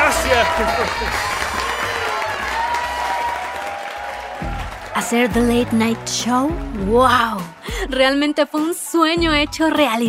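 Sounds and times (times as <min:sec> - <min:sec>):
applause: 0:00.0 - 0:09.0
speech: 0:00.4 - 0:01.4, 0:05.0 - 0:10.0.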